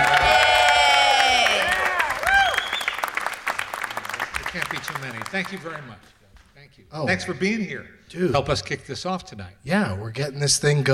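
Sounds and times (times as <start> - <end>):
round of applause: 0.0 - 6.2
speech: 5.3 - 10.9.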